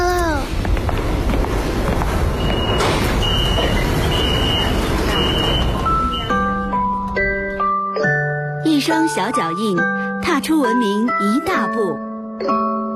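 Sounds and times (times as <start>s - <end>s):
subway train arriving at platform: 0.0s - 7.8s
speech: 9.1s - 12.8s.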